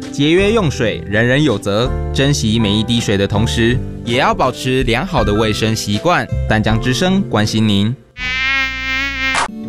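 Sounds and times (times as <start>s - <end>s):
speech: 0.1s - 8.6s
flies buzzing: 8.2s - 9.5s.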